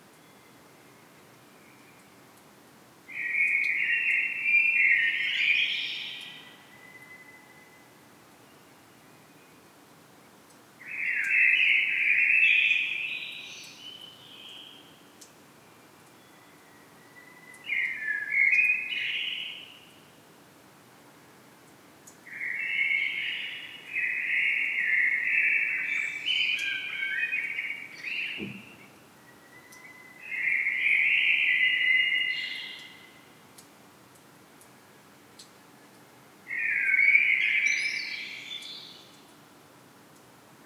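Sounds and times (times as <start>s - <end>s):
common blackbird singing: 3.2s - 7.3s, 10.9s - 14.7s, 16.3s - 19.8s, 22.3s - 33.2s, 36.5s - 39.3s
low thump: 28.4s - 28.7s.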